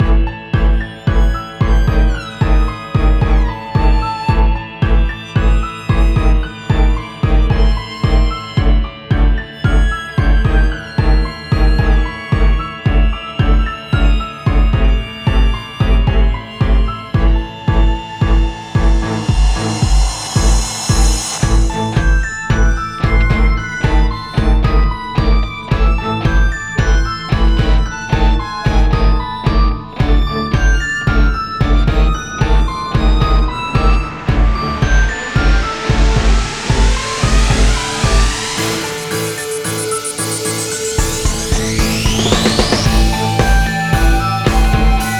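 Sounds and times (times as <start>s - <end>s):
background music: 0.0s - 45.1s.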